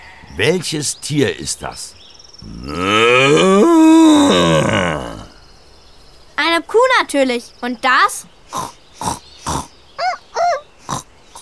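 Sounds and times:
speech: 0.4s - 5.1s, 7.1s - 8.8s
pig and piglets grunting: 2.4s - 5.4s, 8.5s - 11.4s.

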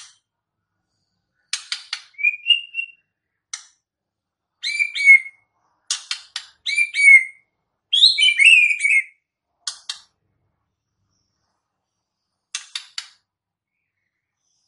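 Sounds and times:
white-rumped shama song: 2.1s - 3.2s, 4.6s - 5.4s, 6.6s - 9.2s.

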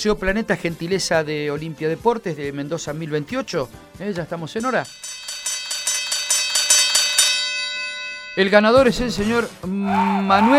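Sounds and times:
speech: 0.0s - 5.1s, 8.4s - 10.5s
bell chimes: 4.6s - 9.4s.

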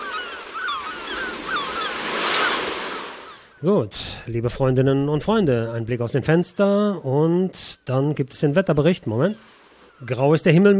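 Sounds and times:
surf at the beach: 0.0s - 4.1s
sea breeze at the beach: 0.0s - 4.5s, 8.6s - 10.7s
speech: 3.6s - 10.7s.

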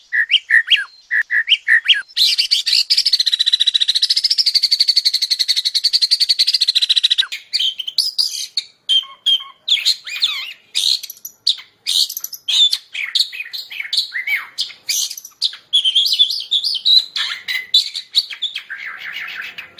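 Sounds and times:
caged songbird song warbling: 0.0s - 19.7s.

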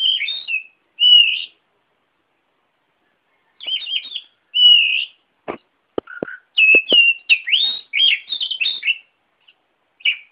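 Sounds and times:
Oriental magpie-robin whistling: 0.0s - 1.6s, 3.5s - 5.2s, 6.0s - 9.1s, 10.0s - 10.3s
sharp clicks: 5.5s - 7.1s.

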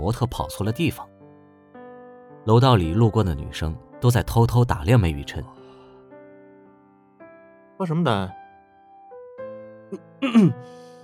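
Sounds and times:
speech: 0.0s - 1.1s, 2.4s - 5.6s, 7.8s - 8.4s, 9.9s - 10.8s
man giving an awkward cough: 9.9s - 10.7s.

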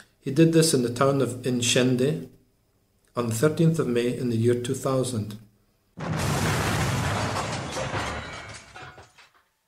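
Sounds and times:
speech: 0.2s - 2.4s, 3.2s - 6.2s
huge triple explosion of a fireworks storage site: 6.0s - 8.8s.

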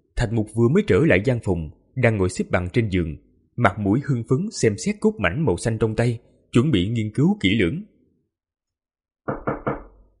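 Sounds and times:
speech: 0.2s - 7.9s
knocking on the door of a stone chamber in a palace: 9.3s - 10.1s.

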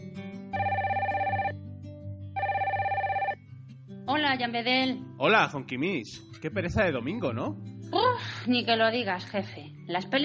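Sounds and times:
telephone bell ringing: 0.6s - 1.6s, 2.4s - 3.4s
speech: 4.2s - 10.2s.

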